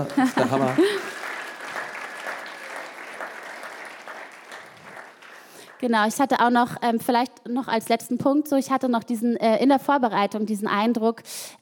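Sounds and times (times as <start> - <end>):
speech: 0.0 - 1.1, 5.8 - 11.6
laughter: 0.0 - 1.8
applause: 0.0 - 6.4.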